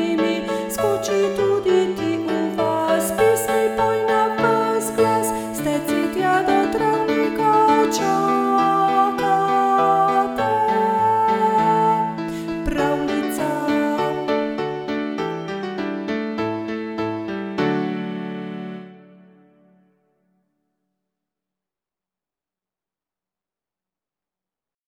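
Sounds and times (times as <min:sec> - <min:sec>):
person singing: 0:00.0 - 0:15.0
piano: 0:00.0 - 0:20.5.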